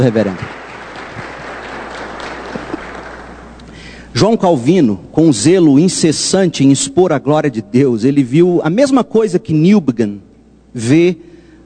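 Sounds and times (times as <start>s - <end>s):
speech: 0.0s - 0.6s, 4.2s - 11.6s
audience applause: 0.0s - 3.6s.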